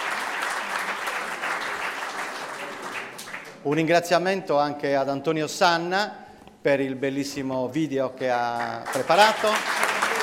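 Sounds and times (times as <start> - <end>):
audience applause: 0.0 - 3.6, 8.6 - 10.2
speech: 3.6 - 9.8.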